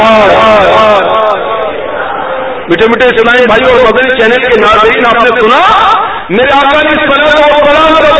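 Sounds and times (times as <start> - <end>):
crowd chanting a religious slogan at a religious gathering: 0.2 - 2.7
speech: 3.5 - 8.0.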